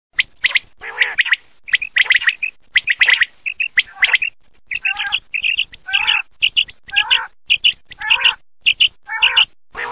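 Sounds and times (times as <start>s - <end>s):
quail: 0.2s - 9.9s.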